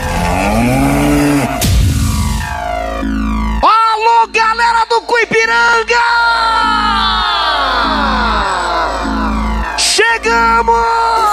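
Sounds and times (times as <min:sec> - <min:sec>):
buffalo bellowing: 0:00.0 - 0:01.7
steady electronic tones: 0:00.0 - 0:11.3
sharp hit: 0:01.1 - 0:03.6.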